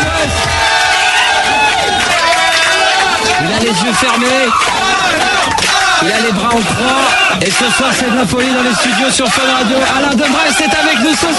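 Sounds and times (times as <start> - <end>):
studio crowd cheering and applauding in a standing ovation: 0.0 - 11.3
speech: 3.9 - 4.7, 6.0 - 11.3.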